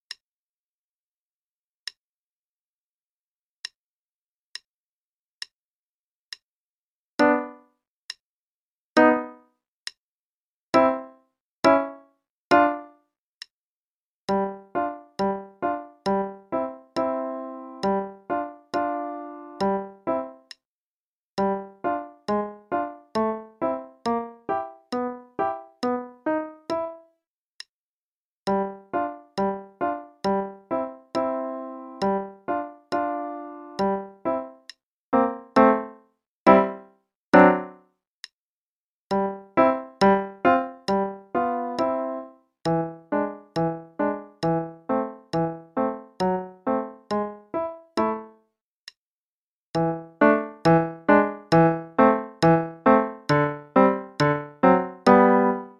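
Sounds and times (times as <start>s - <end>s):
left hand play-along part: 7.2s - 7.7s, 9.0s - 9.5s, 10.8s - 13.0s, 14.3s - 20.6s, 21.4s - 27.1s, 28.5s - 37.8s, 39.1s - 48.4s, 49.8s - 55.7s.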